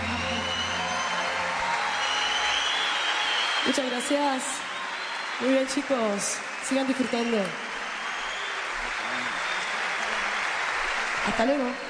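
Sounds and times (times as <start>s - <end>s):
audience applause: 0.0s - 11.8s
speech: 3.6s - 4.7s, 5.4s - 7.6s, 11.3s - 11.8s.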